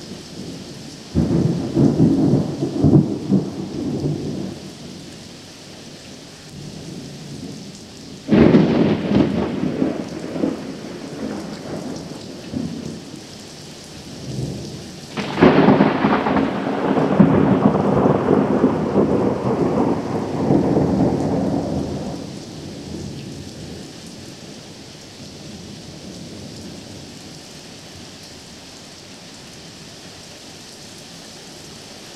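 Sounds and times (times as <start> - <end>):
thunderstorm: 0.3 - 5.0, 6.5 - 13.2, 14.0 - 24.7.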